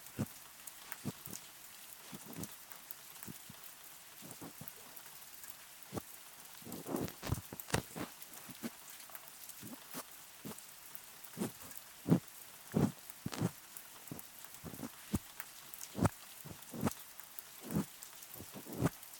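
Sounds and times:
rain: 0.0 - 19.1
ear massage sounds: 0.9 - 1.4, 2.0 - 2.5, 4.2 - 4.9, 6.6 - 8.8, 9.6 - 10.6, 11.4 - 15.3, 15.9 - 17.0, 17.6 - 19.0.

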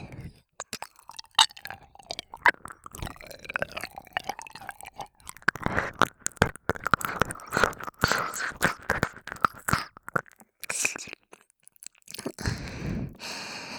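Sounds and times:
binaural ear cleaning ASMR sounds: 0.6 - 11.1
binaural ear licking ASMR sounds: 0.6 - 13.7.

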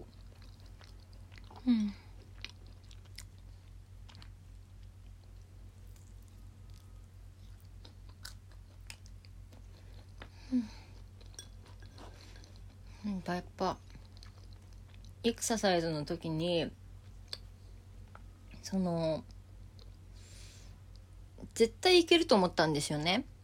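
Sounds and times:
chewing edamame: 0.0 - 12.8, 13.8 - 15.2
low steady hum: 0.0 - 21.6
speech: 1.6 - 2.0, 15.2 - 16.8, 18.7 - 19.3, 21.6 - 23.3.

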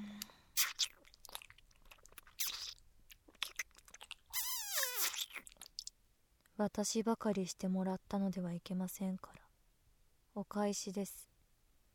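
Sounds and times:
person eating and chewing: 0.2 - 4.3, 5.0 - 5.9
squeaky sound: 4.3 - 5.2
speech: 6.6 - 9.4, 10.4 - 11.3.

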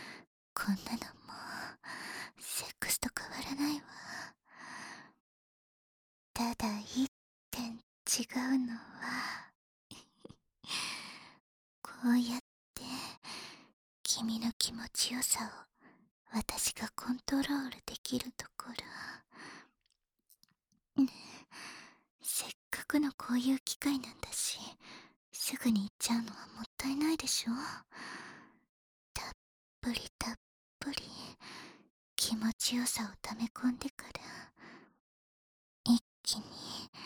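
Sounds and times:
whispering in the ear: 0.6 - 1.8, 2.4 - 4.1, 6.4 - 9.1, 11.8 - 13.2, 14.1 - 15.7, 16.3 - 19.3, 22.2 - 24.8, 25.4 - 27.9, 29.2 - 31.4, 32.2 - 34.6, 35.9 - 37.0.

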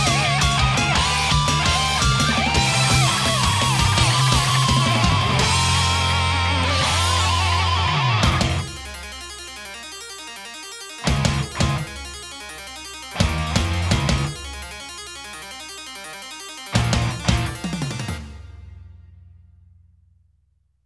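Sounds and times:
off vocal instrumental music: 0.0 - 19.6.

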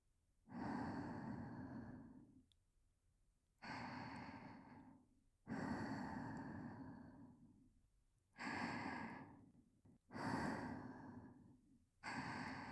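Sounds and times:
whispered breathing: 0.5 - 2.3, 3.6 - 7.6, 8.4 - 12.6.

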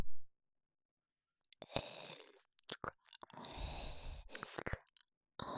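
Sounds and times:
ear licking: 1.6 - 5.0.

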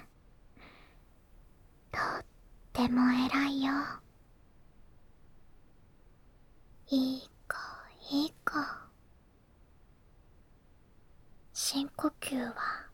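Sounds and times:
ASMR whispering: 1.9 - 4.1, 6.9 - 9.0, 11.6 - 12.9.

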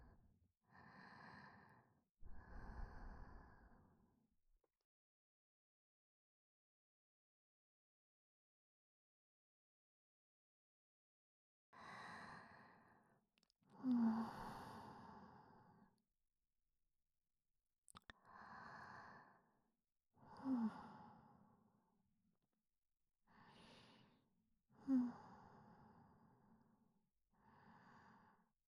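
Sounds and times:
breathing in the left ear: 0.7 - 4.0, 11.8 - 13.2, 13.8 - 16.0, 18.2 - 19.6, 20.2 - 21.8, 23.3 - 26.8, 27.4 - 28.6.

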